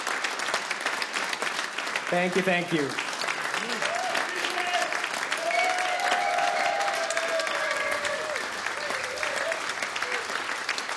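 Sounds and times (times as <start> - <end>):
concert audience applauding: 0.0 - 10.9
speech: 2.1 - 3.0.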